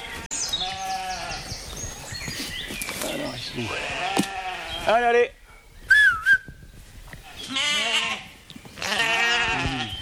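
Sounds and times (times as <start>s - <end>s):
grazing ewes bleating: 0.1s - 1.4s, 3.6s - 5.0s, 7.4s - 10.0s
speech: 3.5s - 4.0s, 4.9s - 5.4s
brief high whistle-like tone: 5.9s - 6.6s.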